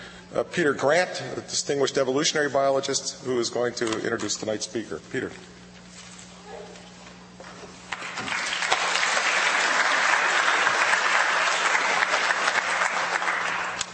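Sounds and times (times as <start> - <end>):
speech: 0.3 - 5.6
audience applause: 7.9 - 13.9.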